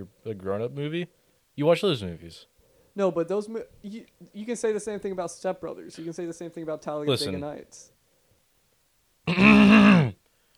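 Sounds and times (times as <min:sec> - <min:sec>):
speech: 0:00.0 - 0:08.0, 0:09.3 - 0:09.7
throat clearing: 0:09.3 - 0:10.2.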